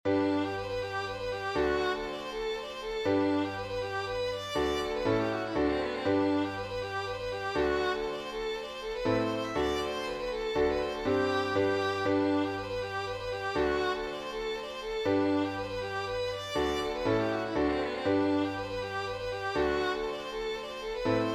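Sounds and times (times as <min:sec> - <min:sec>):
minuet and polska music: 0:00.1 - 0:21.3.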